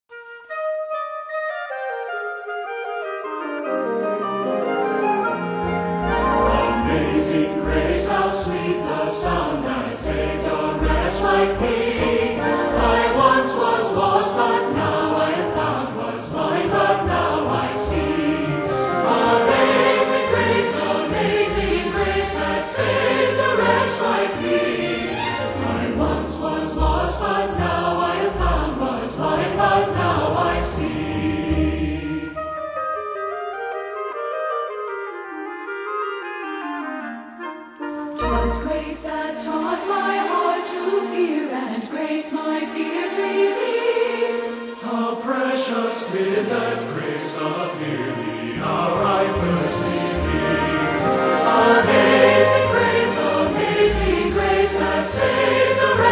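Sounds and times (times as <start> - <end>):
orchestra playing: 0.2 - 40.2, 46.6 - 56.1
choir singing: 3.8 - 32.8, 38.1 - 56.1.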